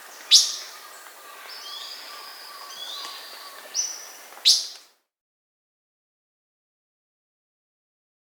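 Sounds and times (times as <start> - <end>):
Blue-black Grosbeak Cyanocompsa cyanoides in Peru: 0.0 - 4.9.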